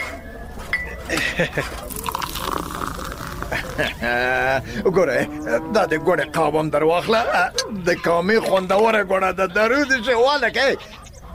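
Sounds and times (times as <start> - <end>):
speech: 1.1 - 2.2, 3.8 - 11.3
tea pouring into a cup: 1.7 - 4.6
crockery clinking: 1.9 - 4.1.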